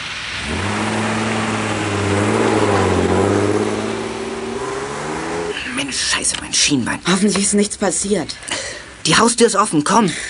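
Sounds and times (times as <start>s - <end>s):
old box van engine rattling drone driving away: 0.4s - 6.2s
speech: 6.7s - 10.2s.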